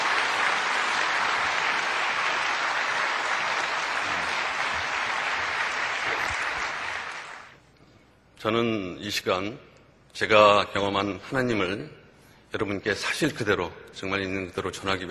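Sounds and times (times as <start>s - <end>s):
audience applauding: 0.0s - 7.6s
speech: 8.4s - 15.1s.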